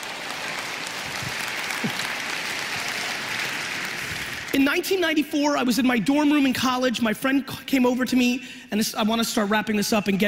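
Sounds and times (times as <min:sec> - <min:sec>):
audience applause: 0:00.0 - 0:04.6
speech: 0:04.6 - 0:10.2.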